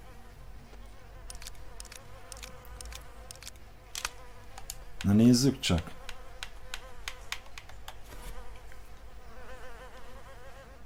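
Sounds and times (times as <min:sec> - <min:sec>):
flies buzzing around a backpack with rotting meat inside: 0:00.0 - 0:10.8
speech: 0:05.0 - 0:06.0.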